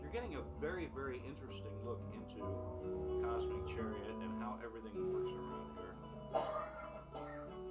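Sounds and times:
speech: 0.1s - 6.6s
man coughing during a live show at a resort in Cape Coral, Florida: 6.3s - 7.5s.

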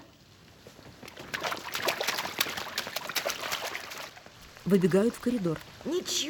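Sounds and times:
water pouring from overflowing sinks onto floor: 1.0s - 5.9s
speech: 4.7s - 6.2s.

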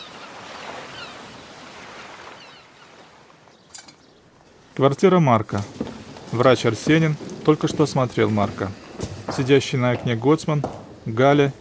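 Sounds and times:
sea waves breaking on shore: 0.0s - 11.6s
speech: 4.8s - 8.8s, 9.4s - 11.6s.

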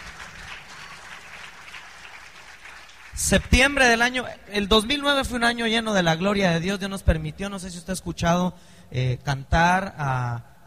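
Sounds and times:
audience applause in a church service: 0.0s - 3.4s
speech: 3.2s - 10.6s.

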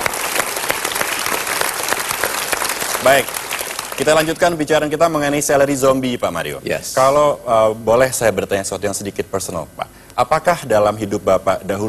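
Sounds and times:
studio audience applause at a televised seminar: 0.0s - 4.5s
speech: 3.0s - 3.4s, 4.0s - 11.8s.

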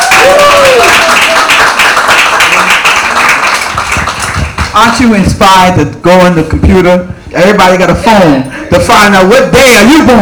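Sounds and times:
audience clapping hands: 0.0s - 5.2s
speech: 4.8s - 10.2s.

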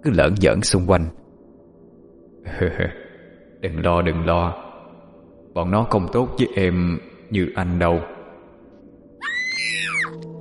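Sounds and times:
speech: 0.0s - 1.2s, 2.4s - 3.0s, 3.6s - 4.6s, 5.6s - 8.1s
terrified screams: 9.2s - 10.2s.

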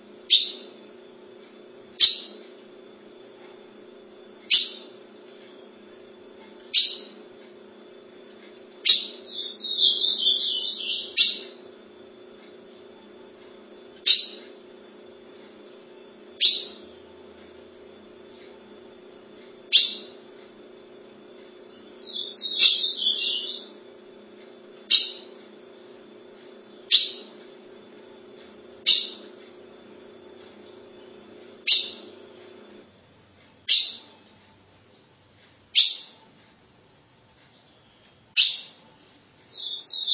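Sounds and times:
low electrical hum: 0.0s - 40.1s
ultramarine grosbeak singing: 0.2s - 0.9s, 1.9s - 2.5s, 4.4s - 5.8s, 6.5s - 7.4s, 8.0s - 12.1s, 12.8s - 17.1s, 17.7s - 20.3s, 21.4s - 24.0s, 24.8s - 25.4s, 26.4s - 27.6s, 28.3s - 29.5s, 30.3s - 32.3s, 33.6s - 34.3s, 35.7s - 36.3s, 37.5s - 38.9s, 39.5s - 40.1s.

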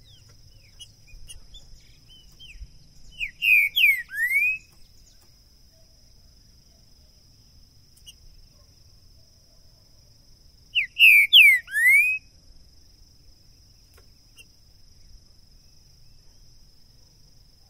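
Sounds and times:
green-winged saltator song of rich downslurred whistles: 0.0s - 5.3s, 10.7s - 12.3s.

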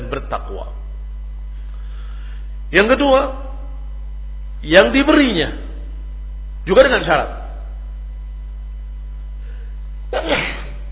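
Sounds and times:
speech: 0.1s - 0.8s, 2.7s - 3.4s, 4.6s - 5.7s, 6.6s - 7.4s, 10.1s - 10.6s
sneeze: 10.1s - 10.9s.

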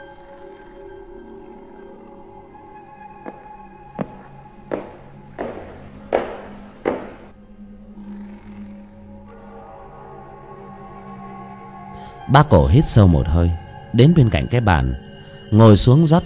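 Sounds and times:
soft footsteps climbing wooden stairs: 3.2s - 7.3s
speech: 12.3s - 16.2s.

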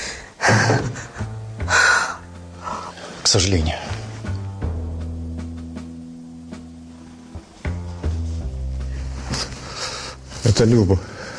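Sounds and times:
faint breathing: 0.0s - 0.4s, 1.0s - 3.2s, 8.1s - 10.4s, 11.0s - 11.3s
speech: 0.5s - 1.0s, 3.3s - 3.9s, 10.6s - 11.2s.

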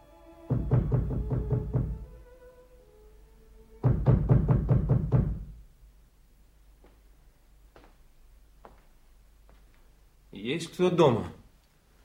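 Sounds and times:
rapid knocking on the wooden door of a house at its porch: 0.5s - 2.1s, 3.8s - 5.6s
speech: 10.6s - 11.4s.

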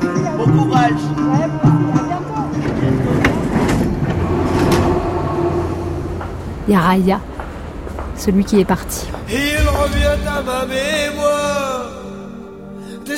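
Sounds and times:
speech: 0.4s - 1.8s, 6.7s - 7.3s, 8.2s - 11.8s
steady low rumble in a Paris metro station corridor at Châtelet: 2.7s - 12.3s.

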